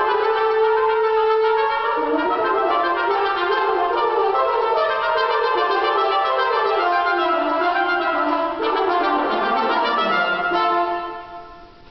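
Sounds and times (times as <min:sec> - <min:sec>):
scherzo music: 0:00.0 - 0:11.8.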